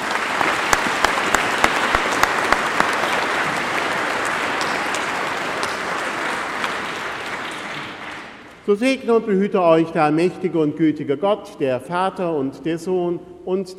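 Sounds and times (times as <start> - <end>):
audience clapping: 0.0 - 8.6
speech: 8.7 - 13.7.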